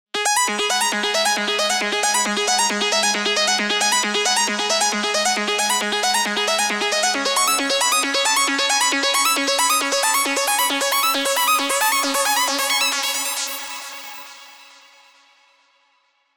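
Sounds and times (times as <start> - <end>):
dub music: 0.3 - 13.3.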